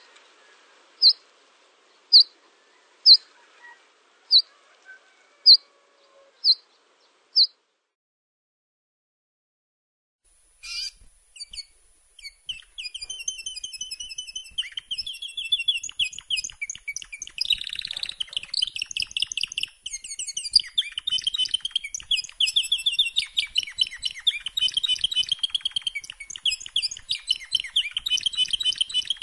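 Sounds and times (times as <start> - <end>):
canary singing: 1.0 - 1.2, 2.1 - 7.6, 10.6 - 29.2.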